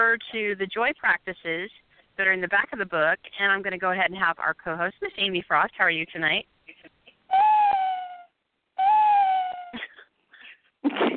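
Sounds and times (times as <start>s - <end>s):
speech: 0.0s - 6.5s
person imitating owl hoot: 7.3s - 9.8s.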